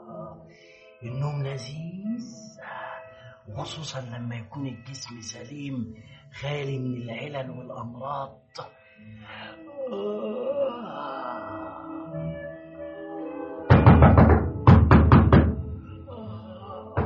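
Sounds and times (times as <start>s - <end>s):
speech: 1.0s - 2.8s, 3.4s - 10.4s
person moaning drowsily: 9.1s - 12.4s, 16.0s - 17.0s
loud hollow knocking on a door in a radio drama: 13.7s - 15.8s.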